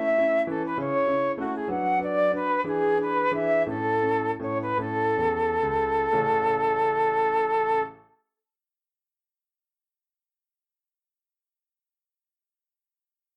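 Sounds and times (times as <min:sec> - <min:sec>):
flute rondo: 0:00.0 - 0:08.0.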